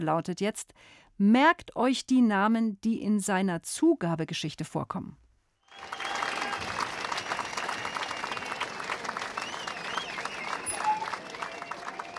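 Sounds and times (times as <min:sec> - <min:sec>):
speech: 0:00.0 - 0:05.2
applause: 0:05.6 - 0:12.1.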